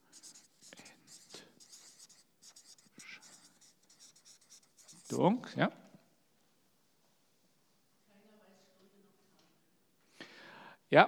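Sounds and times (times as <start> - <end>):
pen scratching on paper while writing by hand: 0.0 - 5.5
speech: 5.1 - 5.8.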